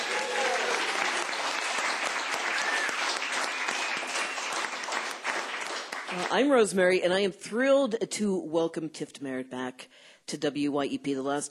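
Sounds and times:
studio audience clapping at a community broadcast center: 0.0s - 6.5s
speech: 6.2s - 11.4s.

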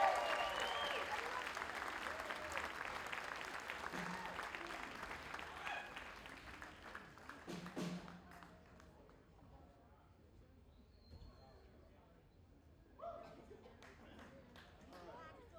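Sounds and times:
audience applause: 0.0s - 7.5s.

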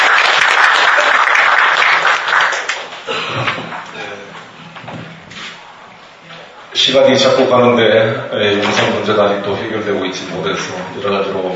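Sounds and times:
big round of applause: 0.0s - 4.0s
speech: 6.9s - 11.5s.

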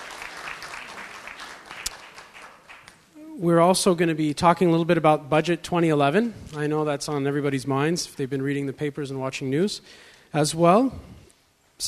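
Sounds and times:
audience applause at a town hall meeting: 0.0s - 3.0s
speech: 3.4s - 11.2s.

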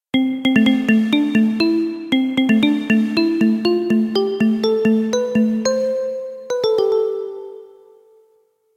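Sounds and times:
marimba: 0.2s - 7.7s.

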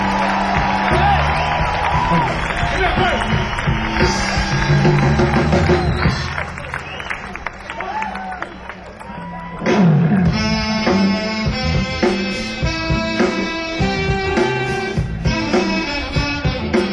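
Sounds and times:
audience applause: 0.0s - 10.3s
cheers: 0.0s - 10.4s
crowd chatter: 0.0s - 16.9s.

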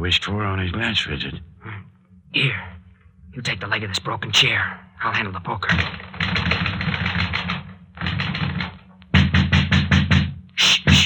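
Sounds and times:
speech: 0.0s - 1.6s, 2.3s - 2.8s, 3.4s - 6.7s
rapid insistent knocking on a door: 5.7s - 11.0s.

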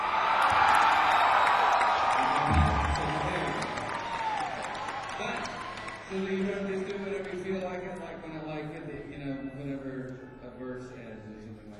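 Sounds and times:
crowd screaming and cheering: 0.0s - 6.9s.

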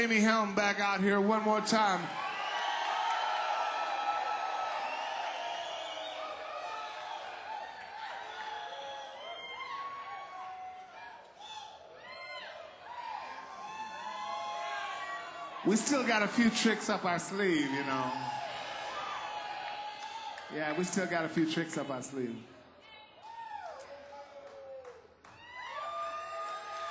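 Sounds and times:
speech: 0.0s - 2.3s, 15.6s - 18.4s, 20.5s - 22.5s
crowd yelling and cheering for an encore: 0.0s - 26.8s
whistles: 4.8s - 6.4s, 8.5s - 9.9s.

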